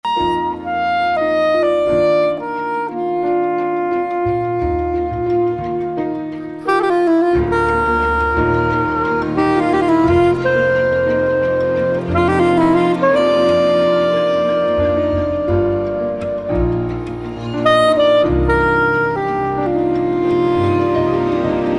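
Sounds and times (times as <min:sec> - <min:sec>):
romantic music at 88 BPM: 0:00.0 - 0:21.7.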